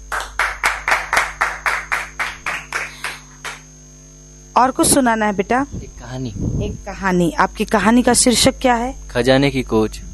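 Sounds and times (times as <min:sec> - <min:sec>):
children clapping loudly: 0:00.1 - 0:03.7
speech: 0:04.6 - 0:10.1.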